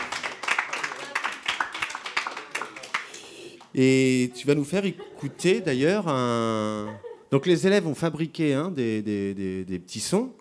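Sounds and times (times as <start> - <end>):
audience applause: 0.0 - 3.7
speech: 3.8 - 10.4
laughter: 3.9 - 7.9.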